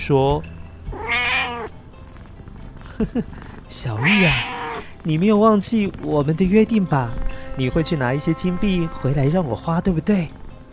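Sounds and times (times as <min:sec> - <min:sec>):
speech: 0:00.0 - 0:00.5, 0:03.0 - 0:10.4
cat meowing: 0:00.9 - 0:01.8, 0:03.7 - 0:04.9.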